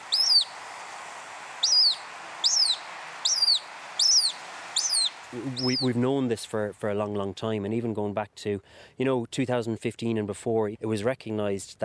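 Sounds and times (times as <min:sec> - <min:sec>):
hen harrier calling: 0:00.0 - 0:00.6, 0:01.6 - 0:06.0
soft hiss: 0:00.0 - 0:11.8
speech: 0:05.3 - 0:11.8.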